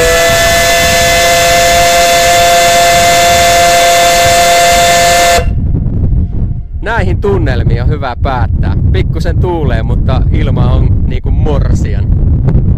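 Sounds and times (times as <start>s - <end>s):
steamship steam whistle blast: 0.0s - 5.6s
low rumbling noise: 0.0s - 12.7s
speech: 7.2s - 12.6s.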